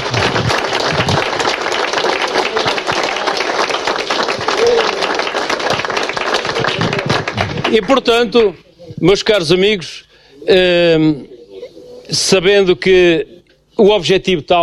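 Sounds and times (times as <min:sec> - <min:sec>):
audience applause: 0:00.0 - 0:08.2
speech: 0:07.7 - 0:11.3, 0:12.1 - 0:14.6.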